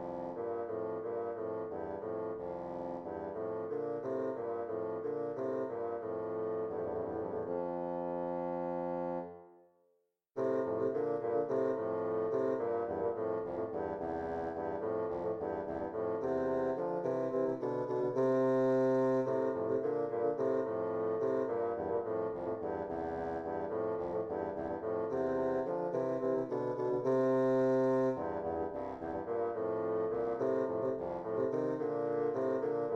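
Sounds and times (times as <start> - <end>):
two bassoons playing an air in F major: 0.0 - 9.3, 10.4 - 32.9.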